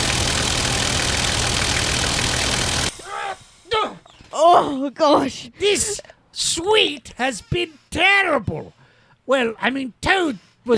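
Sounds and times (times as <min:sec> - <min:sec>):
tank engine running: 0:00.0 - 0:02.9
speech: 0:04.8 - 0:10.7.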